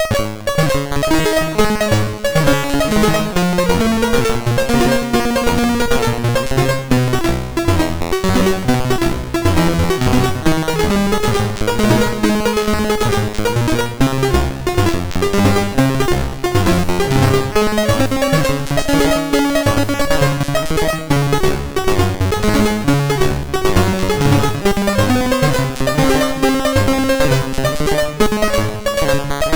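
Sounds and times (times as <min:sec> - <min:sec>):
generated chiptune music on SID MOS6581R2 chip: 0:00.0 - 0:29.5.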